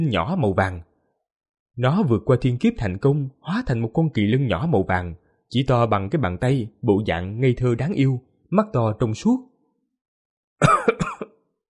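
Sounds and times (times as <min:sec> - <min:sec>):
speech: 0:00.0 - 0:00.9, 0:01.8 - 0:09.5
person coughing up blood: 0:10.6 - 0:11.4.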